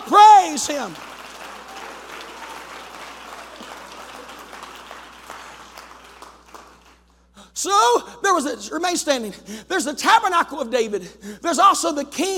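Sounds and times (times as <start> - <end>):
audience clapping hands: 0.0 - 7.1
speech: 0.1 - 1.1, 7.6 - 12.3.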